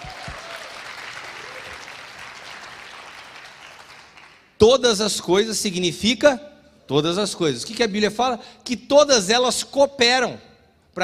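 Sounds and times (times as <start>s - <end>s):
audience applause: 0.0s - 4.5s
speech: 4.6s - 11.0s.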